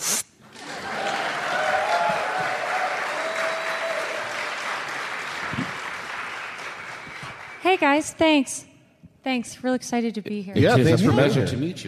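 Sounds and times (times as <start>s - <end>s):
audience applause: 0.5s - 8.0s
cheers and whoops: 0.7s - 4.7s
speech: 7.7s - 11.8s.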